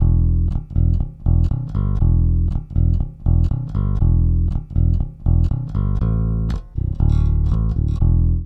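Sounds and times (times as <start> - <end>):
bass: 0.0 - 8.4.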